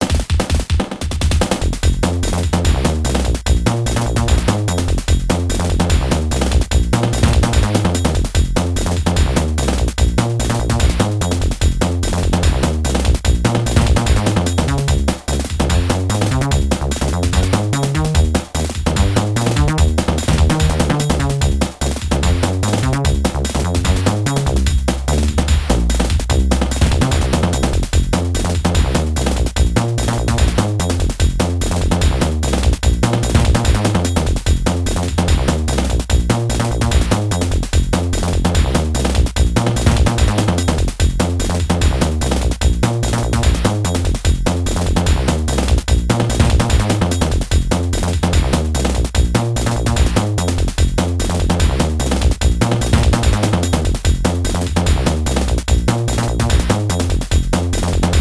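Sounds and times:
in-game background music: 0.0 - 58.1.

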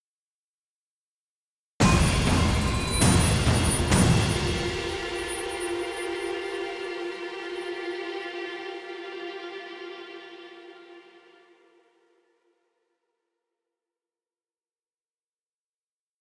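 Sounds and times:
string instrument: 1.8 - 12.4.

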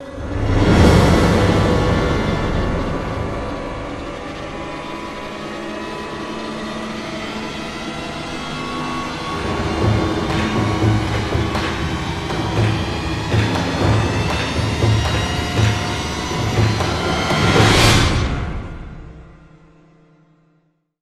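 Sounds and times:
reverse hit sting: 0.0 - 5.5, 8.8 - 19.6
string swell: 0.0 - 19.6.

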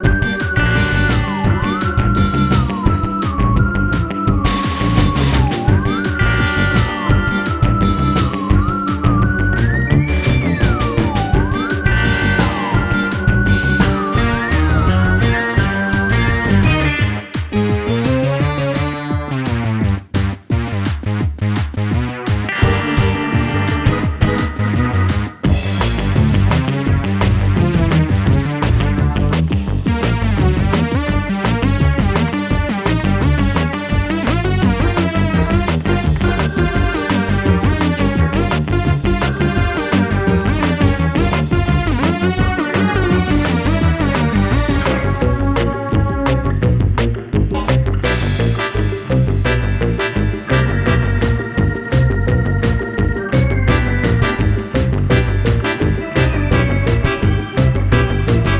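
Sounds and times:
medium combat music loop: 0.0 - 58.5.

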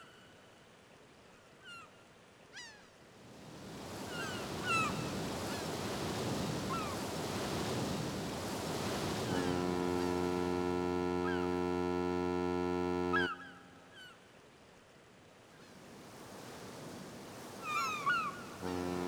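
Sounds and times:
fishing ambience: 3.7 - 13.9, 15.9 - 19.0.

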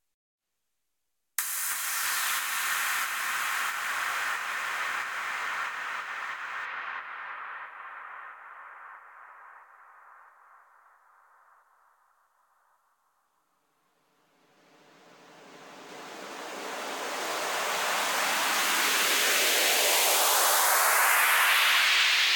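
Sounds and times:
synthwave sweeps at 91 bpm: 1.4 - 10.4, 14.4 - 22.3.

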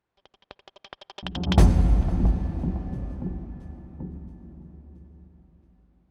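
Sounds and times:
89 BPM music beat: 1.2 - 5.3.

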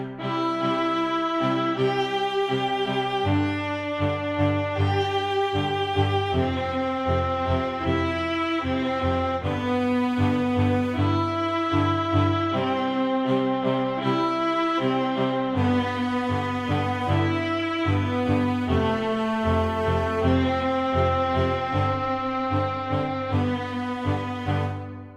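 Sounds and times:
merchant music loop: 0.1 - 25.1.

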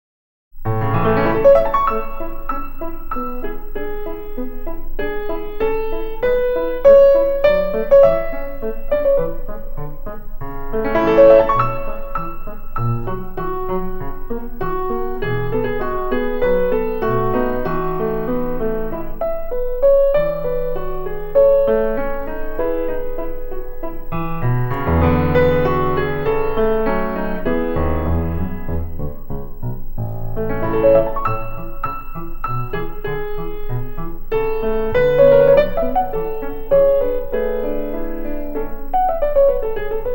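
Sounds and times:
piano sonata: 0.6 - 40.1.

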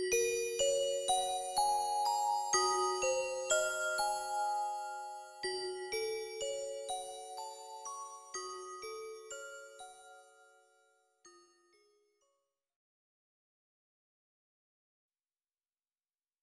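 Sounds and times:
music box: 0.0 - 12.2.

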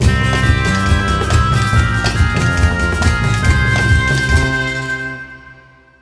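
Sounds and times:
match win jingle: 0.0 - 5.3.

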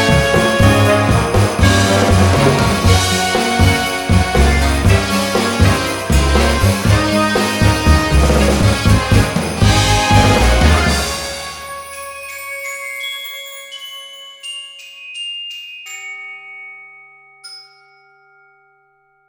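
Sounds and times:
orchestral music: 0.0 - 13.0.

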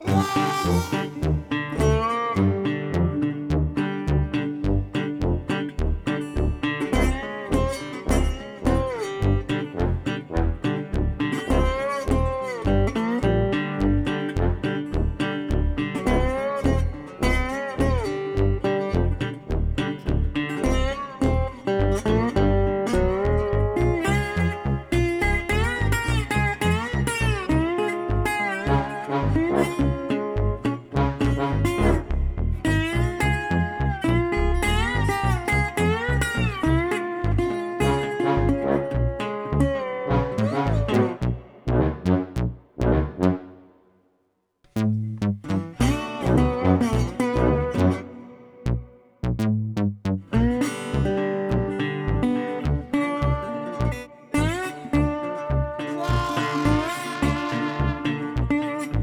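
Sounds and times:
synth guitar battle music: 0.0 - 43.7, 44.8 - 49.4, 50.1 - 59.0.

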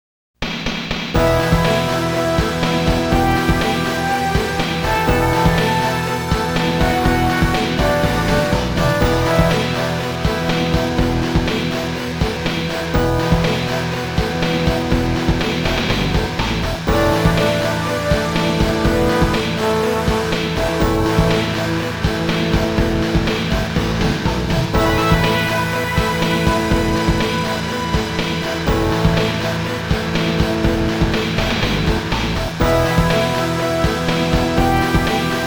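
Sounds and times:
background music: 1.2 - 35.4.

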